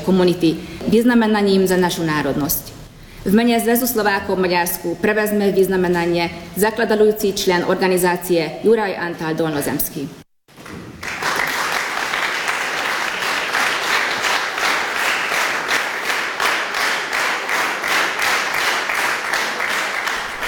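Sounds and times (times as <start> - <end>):
speech: 0.1 - 10.2
audience applause: 10.6 - 20.4.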